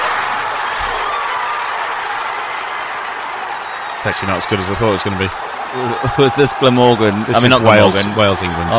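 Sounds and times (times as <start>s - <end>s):
applause: 0.0s - 8.7s
stadium crowd cheering and singing: 0.0s - 8.7s
speech: 4.0s - 8.7s.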